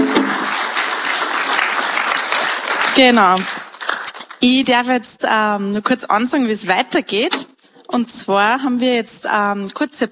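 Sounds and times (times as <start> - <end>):
audience applause: 0.0 - 4.4
speech: 3.0 - 3.5, 4.4 - 10.1.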